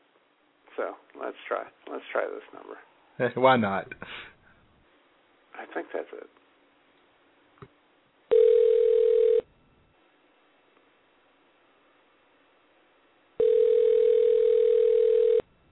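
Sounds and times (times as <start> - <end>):
speech: 0.8 - 4.3, 5.6 - 6.4
telephone ringing tone: 8.3 - 9.5, 13.4 - 15.5.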